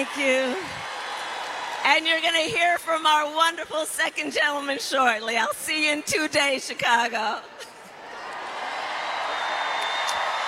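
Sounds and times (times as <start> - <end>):
speech: 0.0 - 0.9, 1.8 - 7.6
arena crowd cheering: 0.0 - 3.3, 7.9 - 10.4.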